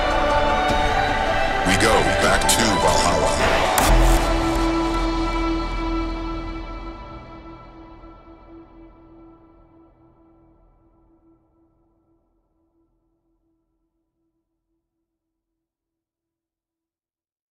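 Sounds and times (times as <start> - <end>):
hardstyle music: 0.0 - 9.2.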